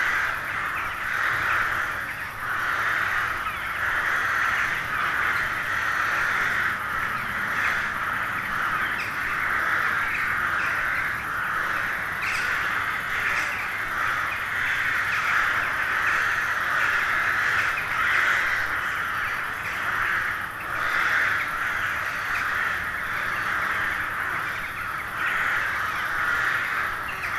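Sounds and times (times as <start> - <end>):
many carrion crows cawing together: 0.0 - 27.3.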